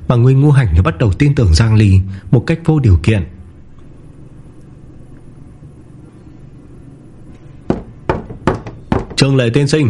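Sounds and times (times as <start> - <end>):
faint low hum: 0.0 - 9.8
speech: 0.1 - 3.4, 9.2 - 9.8
soft knocking on a door from outside: 7.7 - 9.2.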